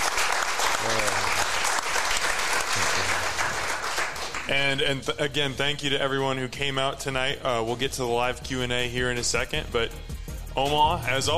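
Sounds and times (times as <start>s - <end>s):
audience applause: 0.0s - 4.5s
speech: 4.5s - 11.3s.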